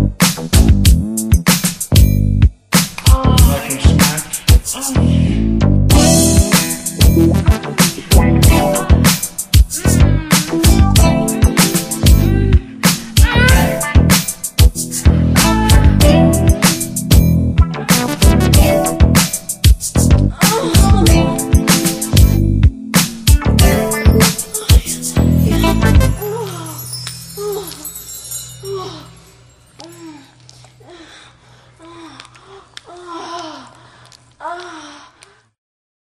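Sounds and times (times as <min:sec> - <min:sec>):
groove music: 0:00.0 - 0:26.4.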